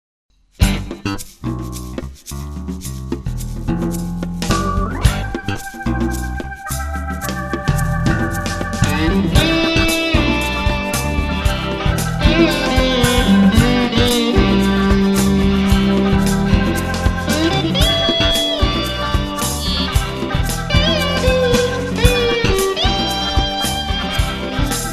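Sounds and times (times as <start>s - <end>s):
funk music: 0.6s - 24.9s.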